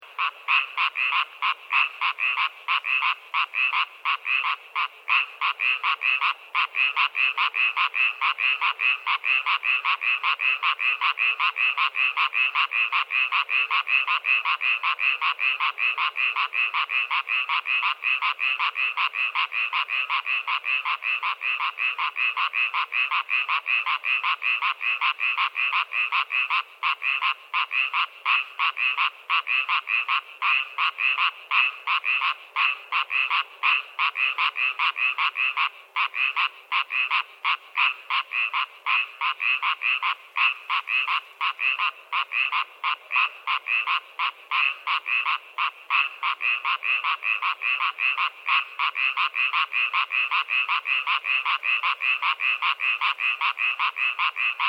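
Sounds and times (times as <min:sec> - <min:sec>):
distant frogs in an unused swimming pool: 0:00.0 - 0:54.6.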